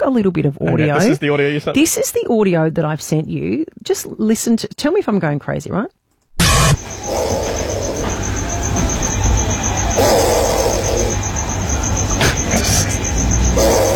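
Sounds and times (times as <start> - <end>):
speech: 0.0 - 6.0
possum snoring up a tree: 6.4 - 13.9.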